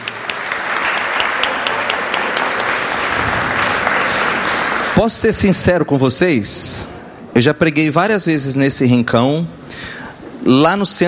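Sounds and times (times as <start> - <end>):
audience applause: 0.0 - 5.1
speech: 5.0 - 11.0.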